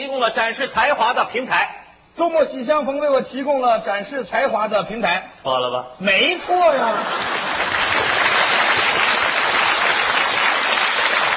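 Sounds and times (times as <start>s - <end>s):
speech: 0.2s - 7.5s
hands clapping: 7.2s - 11.3s.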